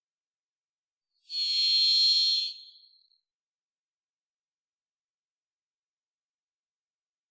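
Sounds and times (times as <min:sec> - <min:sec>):
varied thrush buzzy vibrating whistle: 0:01.3 - 0:03.0.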